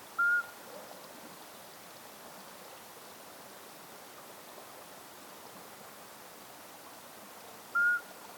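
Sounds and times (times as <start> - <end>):
Iberian midwife toad Alytes cisternasii calling: 0.2 - 0.6, 7.7 - 8.1.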